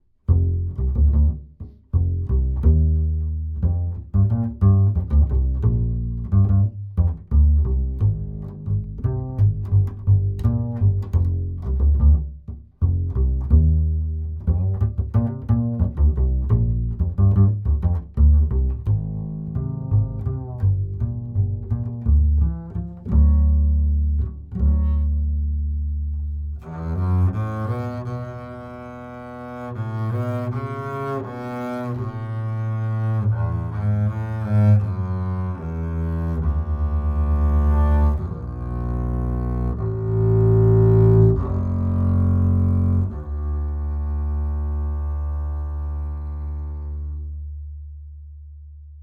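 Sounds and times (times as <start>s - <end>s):
bass: 0.0s - 49.0s.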